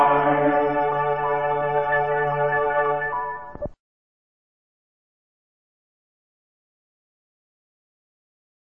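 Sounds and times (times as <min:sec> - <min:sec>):
hymn: 0:00.0 - 0:03.0.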